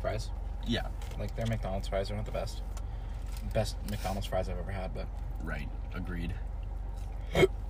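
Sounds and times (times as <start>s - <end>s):
speech: 0.2s - 2.8s, 3.4s - 6.5s, 7.3s - 7.6s
hiccup: 7.3s - 7.6s.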